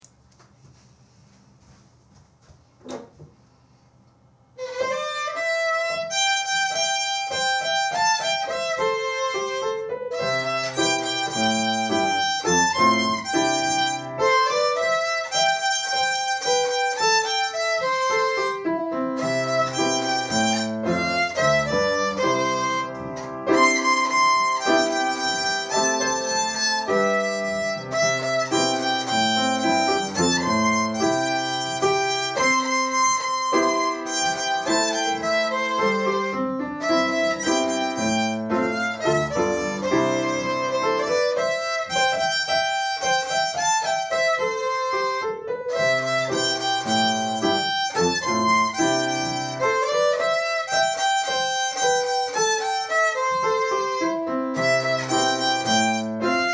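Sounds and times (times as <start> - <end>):
violin melody: 4.6 - 56.5.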